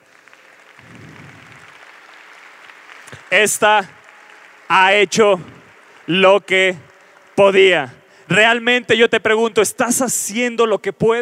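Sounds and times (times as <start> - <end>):
audience applause: 0.0 - 8.6
speech: 3.2 - 4.0, 4.7 - 11.2.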